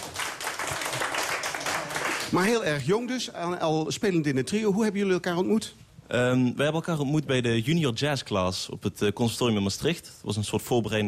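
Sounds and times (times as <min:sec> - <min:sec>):
crowd applauding: 0:00.0 - 0:02.5
speech: 0:02.3 - 0:11.0.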